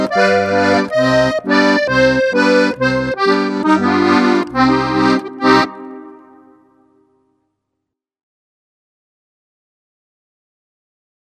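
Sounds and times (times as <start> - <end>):
harmonica: 0.0 - 6.9.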